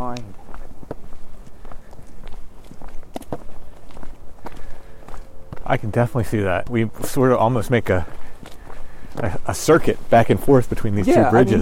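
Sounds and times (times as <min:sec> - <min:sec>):
footsteps of people walking: 0:00.0 - 0:05.8, 0:06.6 - 0:10.1
speech: 0:05.7 - 0:08.5, 0:09.2 - 0:11.6.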